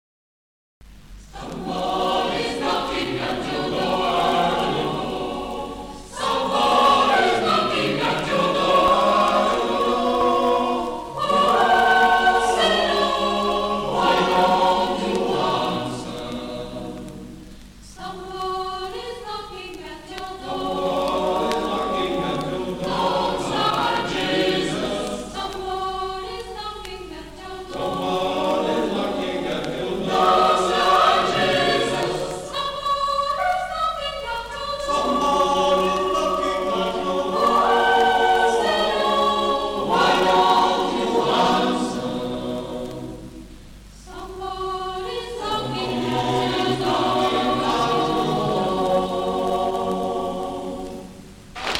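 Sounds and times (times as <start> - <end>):
chorale: 0.8 - 51.6.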